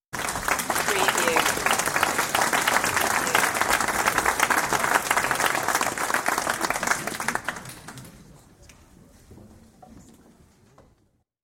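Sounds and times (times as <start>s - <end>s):
audience applause: 0.2s - 8.2s.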